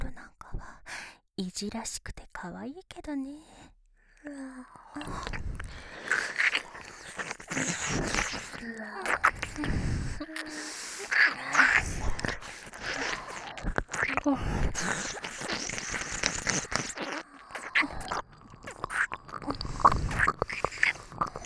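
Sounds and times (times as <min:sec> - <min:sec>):
ear licking ASMR on both ears: 0:04.8 - 0:21.4.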